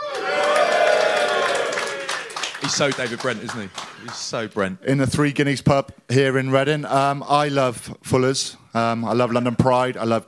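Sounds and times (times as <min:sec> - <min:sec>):
live audience cheering and whooping: 0:00.0 - 0:02.7
applause: 0:00.1 - 0:04.5
speech: 0:02.7 - 0:10.2.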